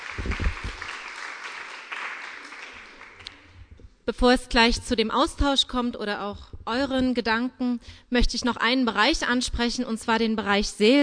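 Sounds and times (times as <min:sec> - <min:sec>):
audience applause: 0:00.0 - 0:03.5
speech: 0:04.1 - 0:11.0.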